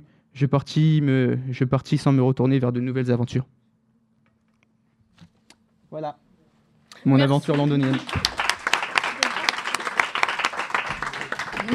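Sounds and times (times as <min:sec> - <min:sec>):
speech: 0:00.4 - 0:03.6, 0:05.9 - 0:06.2, 0:07.0 - 0:08.4
audience applauding: 0:07.2 - 0:11.7.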